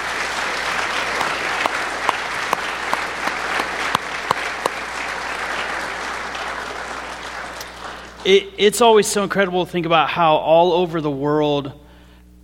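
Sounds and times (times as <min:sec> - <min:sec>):
church congregation applause at a Family Sunday service: 0:00.0 - 0:09.5
speech: 0:08.2 - 0:11.8.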